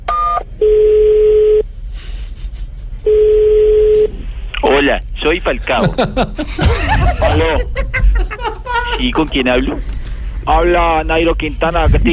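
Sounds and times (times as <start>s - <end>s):
low telephone ring tones: 0.2s - 1.6s, 3.1s - 4.1s
laughter: 2.0s - 3.1s, 5.7s - 9.8s
speech: 5.3s - 7.9s, 9.0s - 12.1s.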